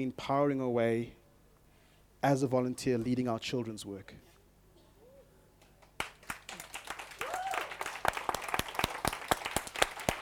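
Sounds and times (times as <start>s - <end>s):
speech: 0.0s - 1.2s, 2.2s - 4.3s
audience clapping: 5.6s - 10.2s.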